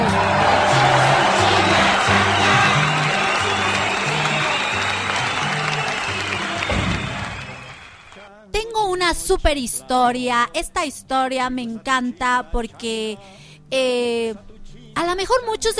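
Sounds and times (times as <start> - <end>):
crowd applauding and cheering: 0.0 - 8.3
speech: 9.3 - 15.7.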